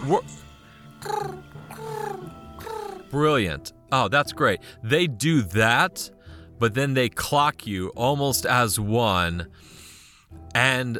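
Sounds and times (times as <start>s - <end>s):
speech: 0.0s - 2.4s, 3.1s - 9.8s, 10.5s - 10.9s
voice imitating pigeon cooing: 1.0s - 3.2s.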